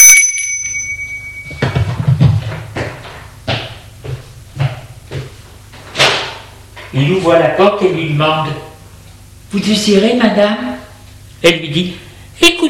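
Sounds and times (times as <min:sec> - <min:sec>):
doorbell ringing: 0:00.0 - 0:02.1
speech: 0:07.0 - 0:08.7, 0:09.5 - 0:10.8, 0:11.4 - 0:12.5.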